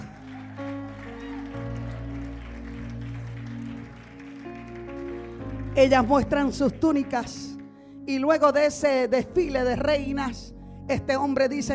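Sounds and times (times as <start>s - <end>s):
audience applause: 0.0s - 6.4s
speech: 5.8s - 7.5s, 8.1s - 11.7s.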